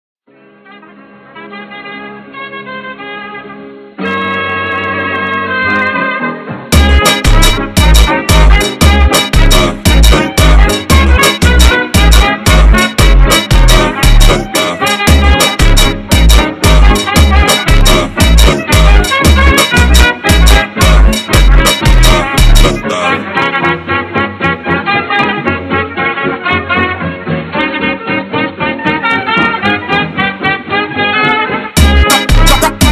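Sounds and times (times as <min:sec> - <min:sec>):
slowed funk music: 0:03.9 - 0:32.9.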